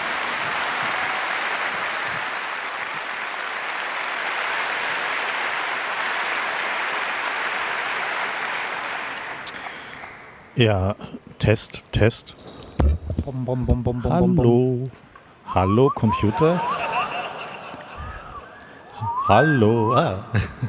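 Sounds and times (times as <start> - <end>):
roaring applause: 0.0 - 10.5, 16.0 - 19.3
speech: 10.6 - 12.6, 13.2 - 16.8, 19.3 - 20.6
laughter: 15.9 - 18.9, 19.8 - 20.6.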